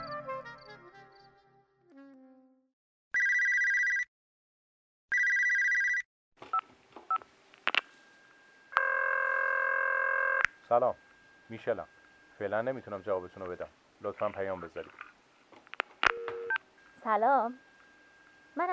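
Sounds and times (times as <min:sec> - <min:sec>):
music: 0:00.0 - 0:02.7
telephone ringing in electronic bursts: 0:03.2 - 0:04.1, 0:05.1 - 0:06.0, 0:07.8 - 0:13.7, 0:16.0 - 0:18.7
answering-machine beep: 0:08.2 - 0:13.6, 0:16.1 - 0:18.7
speech: 0:10.7 - 0:15.1, 0:17.0 - 0:17.7, 0:18.6 - 0:18.7.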